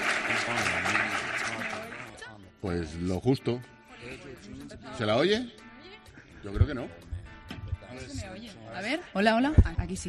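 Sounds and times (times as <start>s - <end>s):
audience applause: 0.0s - 2.2s
speech: 2.6s - 5.6s, 6.4s - 7.0s, 8.0s - 10.0s.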